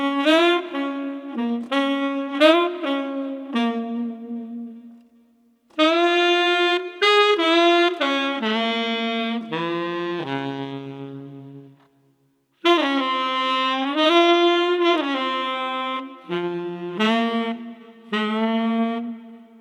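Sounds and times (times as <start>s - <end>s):
street tenor saxophone playing: 0.0s - 19.6s.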